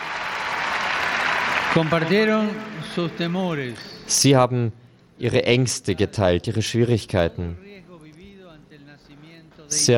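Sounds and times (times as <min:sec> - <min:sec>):
audience applause: 0:00.0 - 0:02.9
speech: 0:01.8 - 0:07.6, 0:09.7 - 0:09.9.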